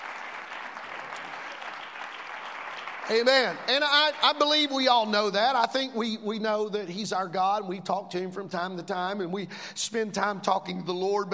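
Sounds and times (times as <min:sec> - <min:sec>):
audience clapping hands: 0:00.0 - 0:05.4
speech: 0:03.1 - 0:11.3.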